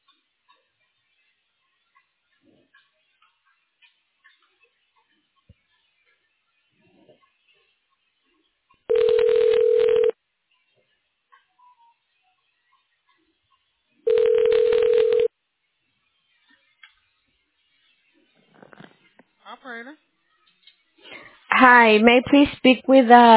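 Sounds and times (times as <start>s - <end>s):
telephone keypad tones dialing an extension number: 8.9s - 10.2s, 14.1s - 15.3s
speech: 19.6s - 20.0s, 21.6s - 23.3s.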